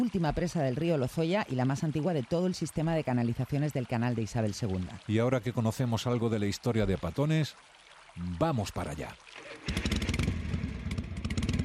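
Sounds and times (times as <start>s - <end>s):
speech: 0.0s - 9.9s
motorcycle engine revving: 9.5s - 11.6s.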